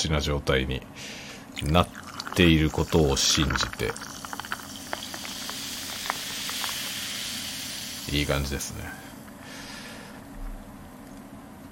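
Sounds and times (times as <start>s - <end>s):
speech: 0.0s - 4.1s, 8.1s - 9.0s
computer fan background noise: 0.0s - 11.7s.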